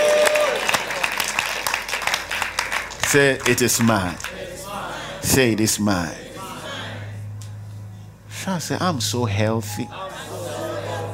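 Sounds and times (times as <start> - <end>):
audience clapping: 0.0 - 4.5
speech: 3.1 - 4.4, 5.2 - 6.2, 8.4 - 10.1.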